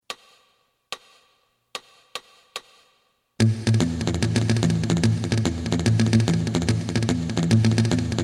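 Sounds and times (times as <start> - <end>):
drum: 1.9 - 8.1.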